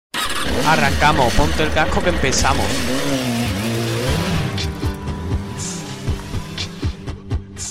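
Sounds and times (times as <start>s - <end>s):
motorcycle engine running and revving: 0.1s - 7.3s
speech: 0.6s - 3.6s.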